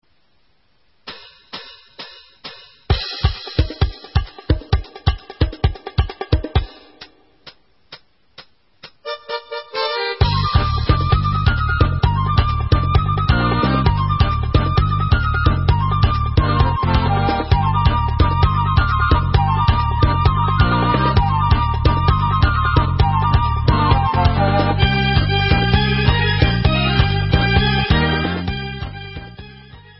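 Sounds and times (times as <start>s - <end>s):
instrumental music: 1.0s - 29.9s.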